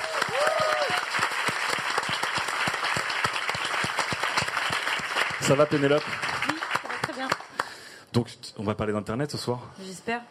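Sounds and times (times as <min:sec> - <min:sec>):
people whooping and cheering: 0:00.0 - 0:01.2
audience applause: 0:00.0 - 0:07.8
speech: 0:05.5 - 0:06.2, 0:08.2 - 0:10.3.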